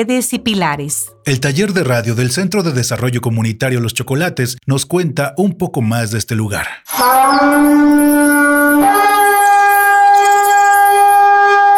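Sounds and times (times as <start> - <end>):
speech: 0.0 - 9.0
shofar ram's horn blown: 6.9 - 11.7.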